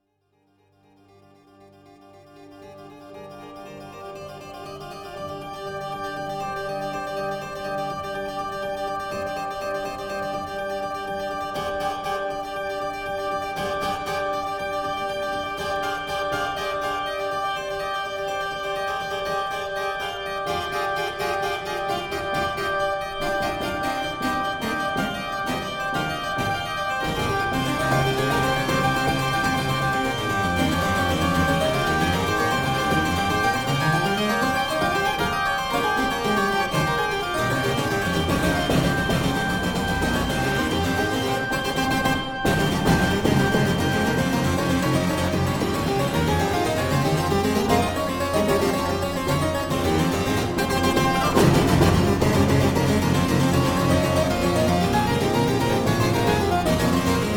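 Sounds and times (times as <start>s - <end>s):
Phrygian tucket brass fanfare: 5.8s - 57.3s.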